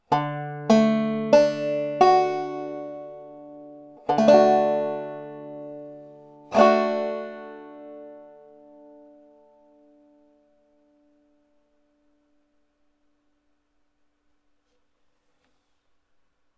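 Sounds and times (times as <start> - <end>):
D major chord on a banjo: 0.0 - 11.4.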